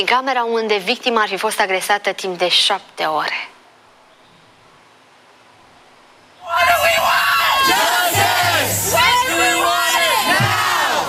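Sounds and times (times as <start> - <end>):
speech: 0.0 - 3.5
large crowd of protesting students shouting and chanting: 6.4 - 11.0.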